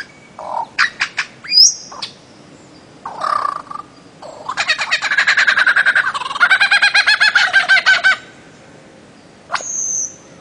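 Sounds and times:
bird-of-paradise master song for training songbirds: 0.0 - 10.3.

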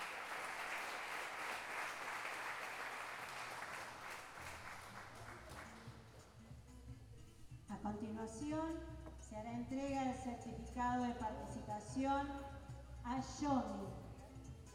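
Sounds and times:
crowd at a pluricultural gathering in Salta applauding: 0.0 - 6.1
speech: 7.9 - 14.0.

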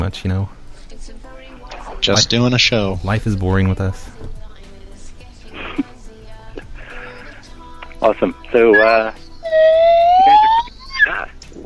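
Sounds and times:
speech: 0.0 - 1.4, 2.0 - 4.4, 8.0 - 9.2
slide whistle: 8.8 - 11.2.

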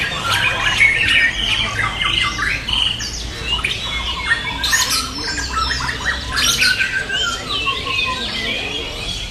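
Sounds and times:
birds singing in a dense chorus of chirps, squawks and warbles: 0.0 - 9.2.

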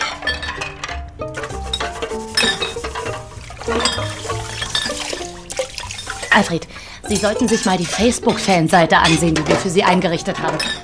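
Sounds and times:
glasses and empty bottles clinking: 0.0 - 10.8
splashing water: 1.3 - 9.7
speech: 6.4 - 10.8.

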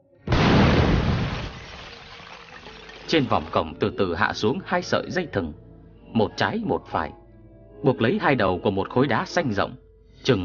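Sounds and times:
firecracker-like bang above a gate: 0.3 - 2.6
speech: 3.1 - 7.2, 7.8 - 10.4.

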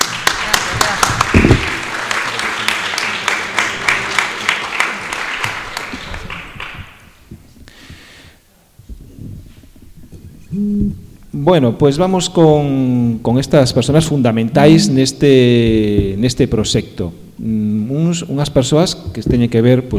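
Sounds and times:
audience applause: 0.0 - 7.2
speech: 11.4 - 19.9.

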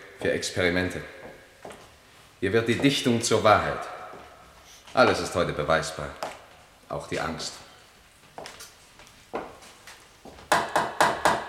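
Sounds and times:
speech: 0.2 - 1.2, 2.4 - 4.0, 5.0 - 6.3, 6.9 - 7.6
knocking: 10.5 - 11.4.

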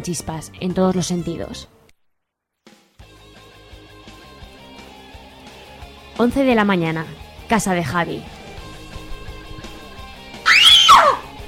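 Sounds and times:
speech: 0.0 - 1.8, 6.2 - 8.4
woman screaming: 10.4 - 11.3.

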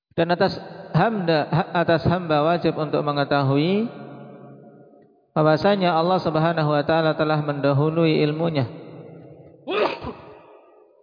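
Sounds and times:
speech: 0.2 - 4.0, 5.4 - 8.8
sneeze: 9.7 - 10.5.

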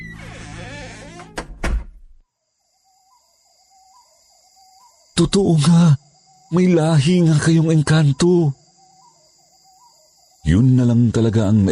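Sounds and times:
door being shut quickly: 0.0 - 2.2
speech: 5.2 - 8.6, 10.4 - 11.7.

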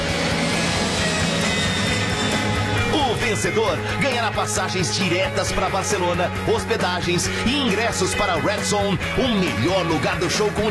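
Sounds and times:
airplane passing overhead: 0.0 - 4.0
speech: 3.3 - 10.6.

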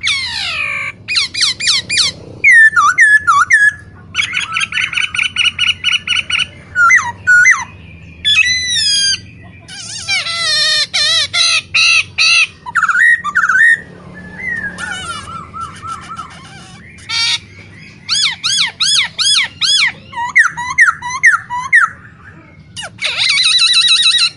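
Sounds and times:
caged masked laughingthrush in full song: 0.0 - 24.3.

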